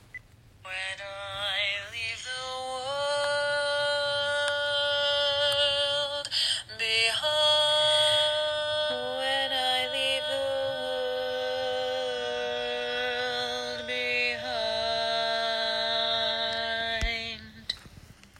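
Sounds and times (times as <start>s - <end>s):
baritone singing a tag: 0.7s - 17.8s.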